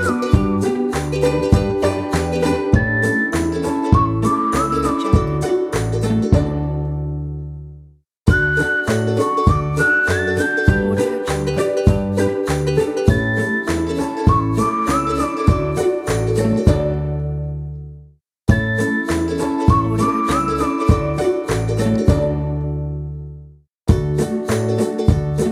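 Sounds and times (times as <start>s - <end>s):
whistling: 0.0s - 5.5s, 8.3s - 16.6s, 18.5s - 21.9s
ukulele: 0.0s - 25.5s.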